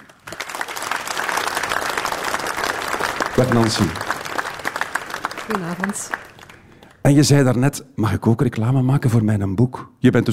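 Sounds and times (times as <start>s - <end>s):
audience applause: 0.0s - 7.1s
speech: 3.4s - 4.1s, 5.5s - 6.2s, 7.0s - 10.3s.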